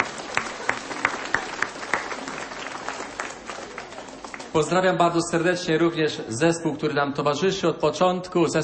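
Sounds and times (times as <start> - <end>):
audience applauding: 0.0 - 4.8
speech: 4.6 - 8.6.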